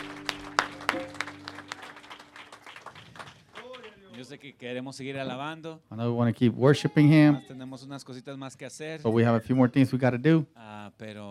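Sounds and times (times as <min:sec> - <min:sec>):
audience applause: 0:00.0 - 0:04.3
speech: 0:04.2 - 0:11.2.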